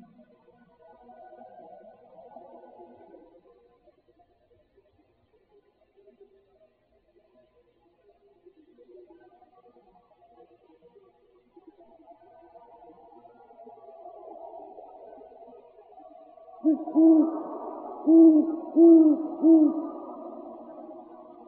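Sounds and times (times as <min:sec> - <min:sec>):
owls: 0:16.6 - 0:21.4.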